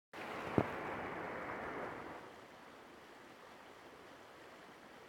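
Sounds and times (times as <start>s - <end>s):
falls on a sledding hill: 0.2s - 2.2s.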